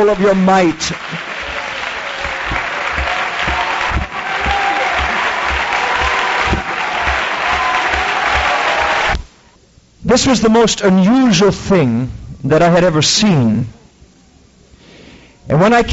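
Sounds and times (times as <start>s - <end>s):
speech: 0.0s - 1.2s, 10.1s - 13.8s, 15.5s - 15.9s
audience clapping: 0.0s - 9.3s.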